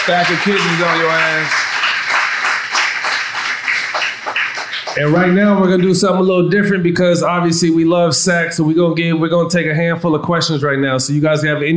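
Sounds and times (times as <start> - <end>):
speech: 0.0 - 1.6, 5.0 - 11.7
audience applause: 0.0 - 5.4.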